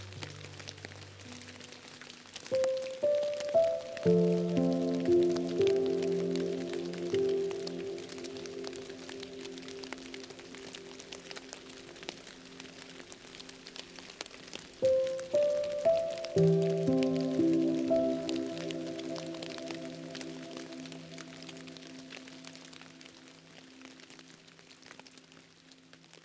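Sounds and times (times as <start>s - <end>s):
rain falling: 0.0s - 26.2s.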